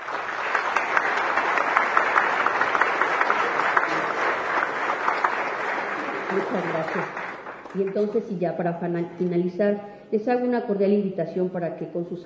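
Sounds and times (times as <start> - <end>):
audience applause: 0.0 - 8.2
speech: 6.5 - 12.2.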